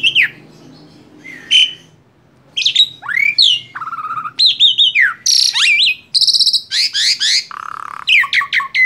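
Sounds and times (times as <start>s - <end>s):
Asian pied starling squawks and whistles: 1.2s - 2.0s, 2.6s - 8.8s.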